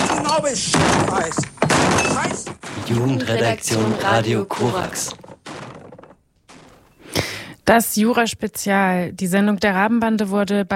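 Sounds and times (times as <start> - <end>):
table being smashed: 0.0 - 7.0
speech: 0.4 - 1.5, 2.2 - 5.2, 7.7 - 10.7.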